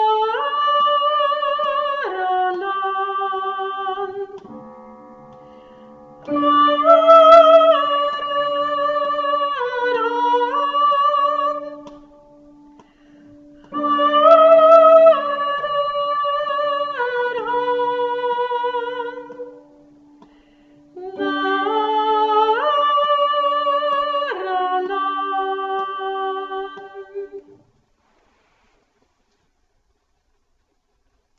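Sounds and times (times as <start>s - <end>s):
tenor singing: 0.0s - 4.6s, 6.2s - 19.8s, 20.9s - 27.6s.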